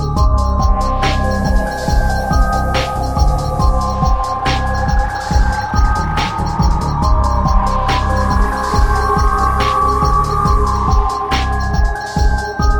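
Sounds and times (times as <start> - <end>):
menu music: 0.2 - 12.6.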